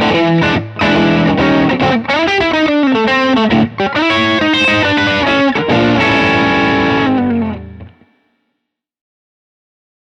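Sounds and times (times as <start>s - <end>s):
electric blues shuffle: 0.0s - 8.1s.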